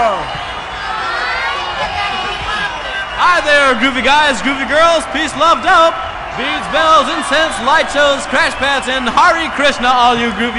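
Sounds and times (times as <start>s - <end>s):
crowd applause and cheering: 0.0s - 10.5s
speech: 3.3s - 10.5s.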